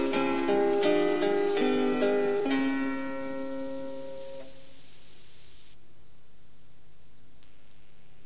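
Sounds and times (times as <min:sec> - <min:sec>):
andante music: 0:00.0 - 0:05.2.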